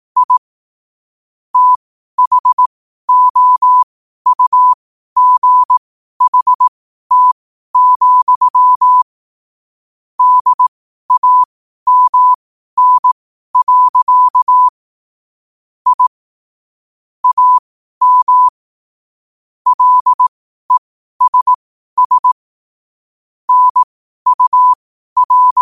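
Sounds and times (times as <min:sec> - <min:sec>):
morse code at 5 wpm: 0:00.2 - 0:00.4, 0:01.6 - 0:09.1, 0:10.2 - 0:14.7, 0:15.9 - 0:16.1, 0:17.2 - 0:18.5, 0:19.7 - 0:22.4, 0:23.5 - 0:25.6.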